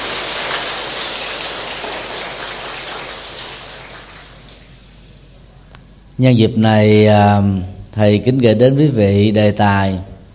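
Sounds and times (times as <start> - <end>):
loud applause: 0.0 - 4.8
speech: 6.2 - 10.1.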